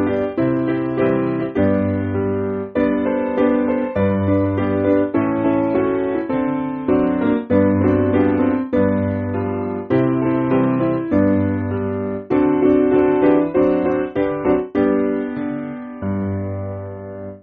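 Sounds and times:
piano backing music for churches: 0.0s - 17.4s.

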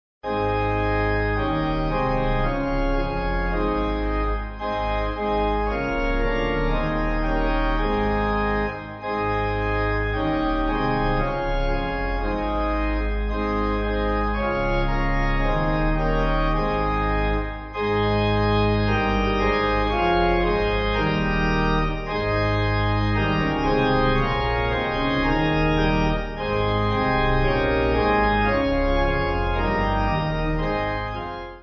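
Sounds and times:
pipe organ: 0.2s - 31.6s.

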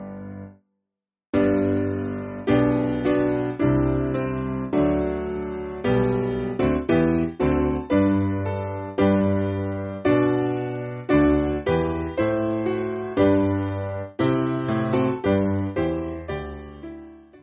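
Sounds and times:
piano backing music for churches: 0.0s - 0.5s, 1.4s - 17.4s.

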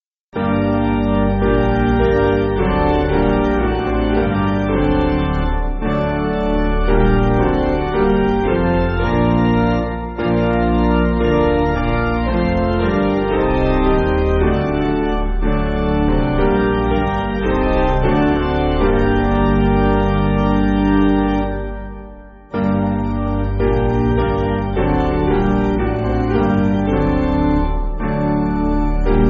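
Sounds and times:
piano backing music for churches: 0.4s - 29.2s.

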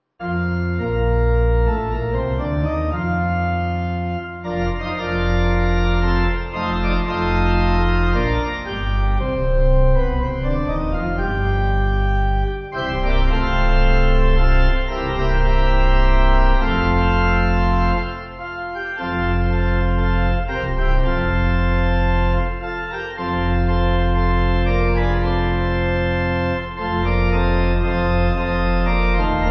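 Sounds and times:
church pipe organ backing music: 0.2s - 29.4s.

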